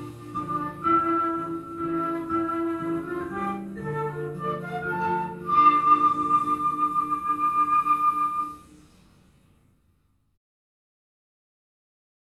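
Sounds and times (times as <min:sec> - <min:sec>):
backing track: 0:00.0 - 0:09.0.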